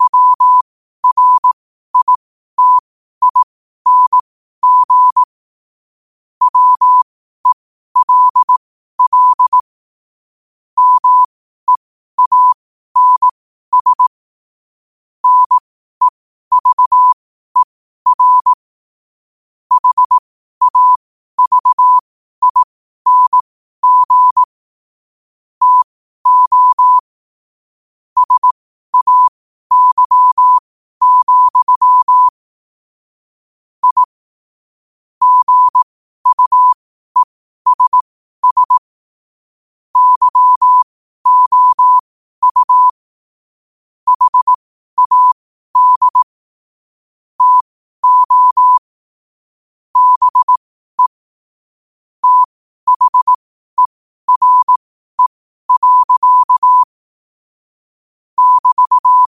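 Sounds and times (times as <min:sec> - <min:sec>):
morse code at 5 wpm: 0:00.0 - 0:05.3, 0:06.4 - 0:09.7, 0:10.8 - 0:14.1, 0:15.2 - 0:18.6, 0:19.7 - 0:24.5, 0:25.6 - 0:27.1, 0:28.2 - 0:32.4, 0:33.8 - 0:34.2, 0:35.2 - 0:38.9, 0:40.0 - 0:43.0, 0:44.1 - 0:46.4, 0:47.4 - 0:48.9, 0:50.0 - 0:51.2, 0:52.2 - 0:57.0, 0:58.4 - 0:59.2.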